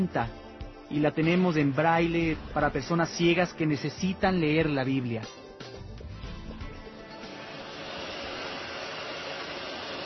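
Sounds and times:
speech: 0:00.0 - 0:05.7
printing press printing Bible sheets: 0:07.4 - 0:10.0.

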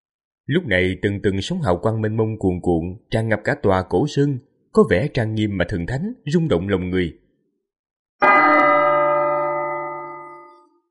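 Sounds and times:
speech: 0:00.5 - 0:07.2
temple bell ringing: 0:08.2 - 0:10.8.

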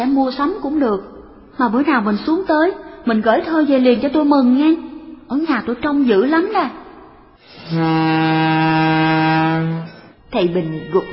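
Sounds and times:
speech: 0:00.0 - 0:06.8, 0:07.4 - 0:09.0, 0:10.3 - 0:11.1
steamboat whistle blowing as the ship departs: 0:07.6 - 0:10.1.

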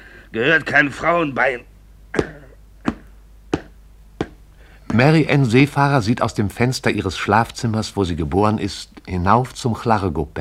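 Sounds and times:
speech: 0:00.3 - 0:02.2, 0:05.0 - 0:10.3
hammer striking a shoe: 0:02.2 - 0:05.0.

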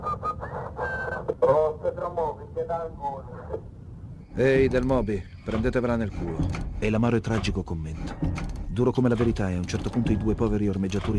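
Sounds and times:
radio static hiss: 0:01.2 - 0:03.7
speech: 0:02.1 - 0:03.7, 0:04.4 - 0:11.1.

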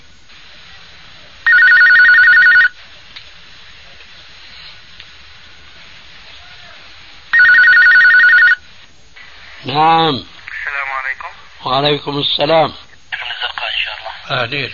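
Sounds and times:
low hiss: 0:00.0 - 0:14.7
telephone ringing: 0:01.5 - 0:02.8, 0:07.3 - 0:08.6
speech: 0:09.6 - 0:10.3, 0:11.6 - 0:12.8, 0:14.3 - 0:14.7.

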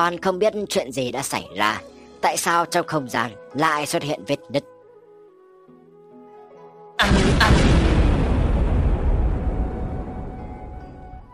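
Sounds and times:
speech: 0:00.0 - 0:04.7
rumbling boom like an earthquake: 0:07.0 - 0:11.3.

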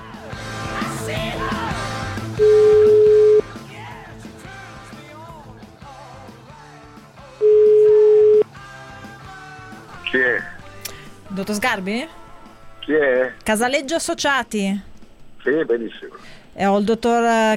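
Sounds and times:
busy music: 0:00.0 - 0:15.4
telephone line ringing before a prank phone call: 0:02.4 - 0:03.4, 0:07.4 - 0:08.4
speech: 0:11.6 - 0:12.2, 0:12.9 - 0:17.5.

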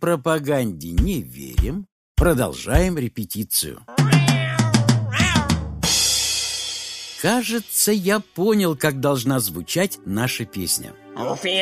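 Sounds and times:
speech: 0:00.0 - 0:04.0, 0:07.2 - 0:11.6
cat meowing: 0:03.9 - 0:05.7.

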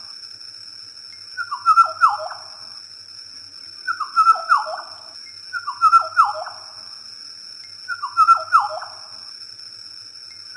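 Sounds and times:
oriole fluting whistled song phrases: 0:01.4 - 0:02.4, 0:03.9 - 0:04.9, 0:05.6 - 0:06.6, 0:07.9 - 0:09.0.

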